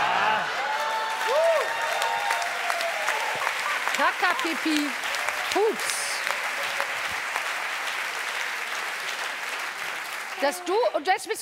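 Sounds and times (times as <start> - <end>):
applause: 0.0 - 11.4
speech: 4.0 - 6.0, 10.4 - 11.4.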